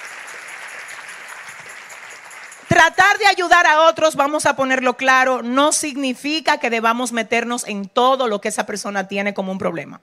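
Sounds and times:
church congregation applause during a Spanish-language sermon: 0.0s - 3.2s
speech: 2.7s - 10.0s.

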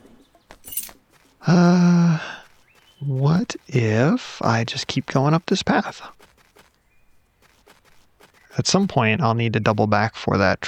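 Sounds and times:
coins clinking from a treasure chest: 0.5s - 1.0s
speech: 1.5s - 2.3s, 3.1s - 6.2s, 8.6s - 10.6s.

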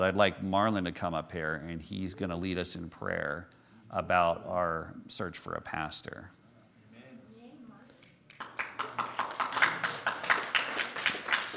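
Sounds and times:
speech: 0.0s - 6.4s
audience applause: 8.4s - 11.5s.

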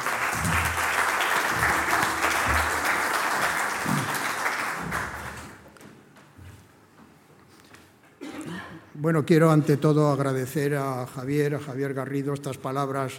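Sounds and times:
audience applause: 0.0s - 5.7s
speech: 9.0s - 13.1s.

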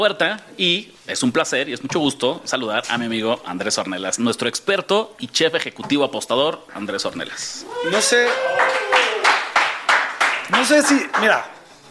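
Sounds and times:
speech: 0.0s - 8.8s, 10.5s - 11.8s
hand claps: 8.2s - 11.6s.

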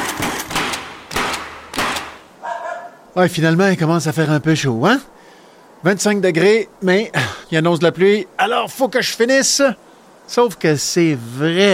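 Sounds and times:
pneumatic nail gun firing on a roof: 0.0s - 2.2s
speech: 3.2s - 5.2s, 5.8s - 11.7s.

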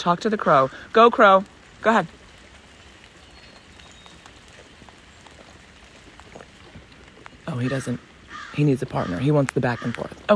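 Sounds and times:
speech: 0.0s - 2.2s, 7.5s - 10.3s
rain falling outdoors: 0.0s - 10.3s.

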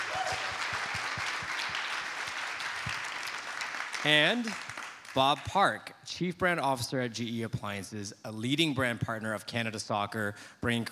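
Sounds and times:
crowd applauding: 0.0s - 5.5s
speech: 4.0s - 10.9s.

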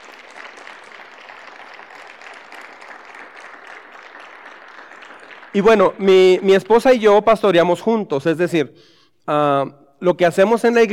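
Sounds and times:
audience applause: 0.0s - 6.8s
speech: 5.5s - 10.9s.

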